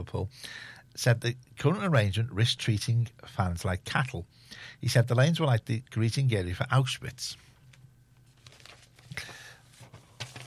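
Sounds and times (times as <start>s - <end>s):
speech: 0.0s - 7.5s
paper tangling and crinkling: 7.6s - 10.4s.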